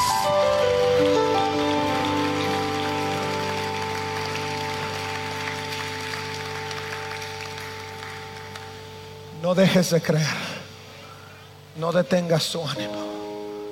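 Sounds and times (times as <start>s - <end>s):
audience applause: 0.0s - 9.2s
speech: 9.5s - 10.5s, 11.8s - 13.1s.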